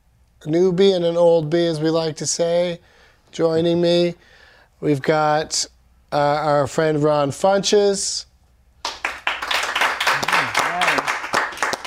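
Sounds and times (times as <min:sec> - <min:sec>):
speech: 0:00.4 - 0:08.3
small audience clapping: 0:08.8 - 0:11.8.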